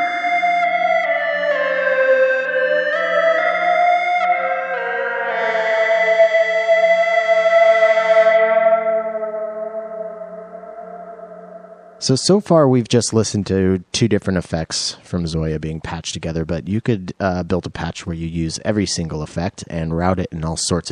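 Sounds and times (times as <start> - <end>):
EBow guitar through long high-mix reverb: 0.0 - 12.1
speech: 12.0 - 20.8.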